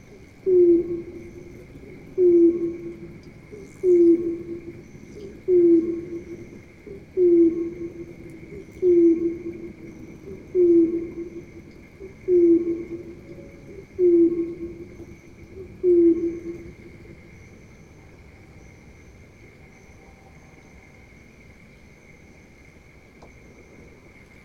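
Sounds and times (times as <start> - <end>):
heron, filtered: 0.0 - 17.2.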